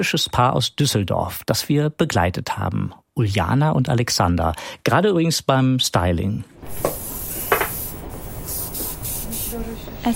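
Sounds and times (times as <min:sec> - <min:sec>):
speech: 0:00.0 - 0:07.0
hairspray sprayed on hair: 0:06.6 - 0:09.8.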